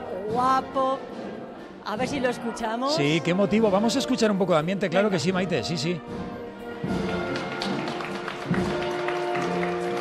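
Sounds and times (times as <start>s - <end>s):
speech: 0.3s - 7.0s
procession crowd applauding: 6.9s - 10.0s.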